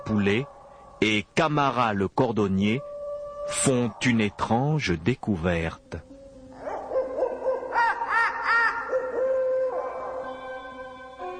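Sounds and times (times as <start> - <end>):
nocturnal birds calling at night: 0.0 - 11.3
speech: 0.1 - 2.9, 3.5 - 6.1.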